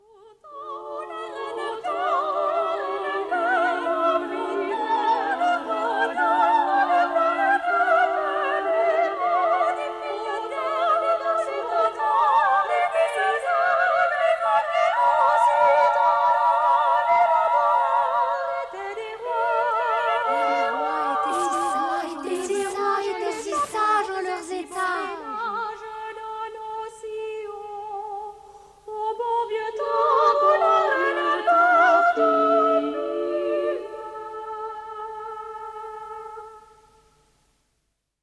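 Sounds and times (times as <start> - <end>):
choir singing: 0.0 - 36.8.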